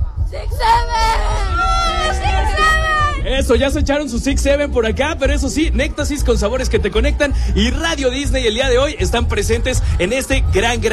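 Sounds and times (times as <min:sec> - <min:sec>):
group of children shouting a cheer: 0:00.5 - 0:03.2
speech: 0:03.3 - 0:10.9.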